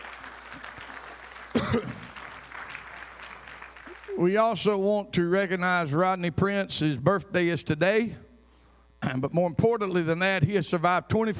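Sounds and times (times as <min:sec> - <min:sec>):
audience clapping hands in praise: 0:00.0 - 0:04.4
speech: 0:01.7 - 0:02.0, 0:04.2 - 0:08.2, 0:09.1 - 0:11.3.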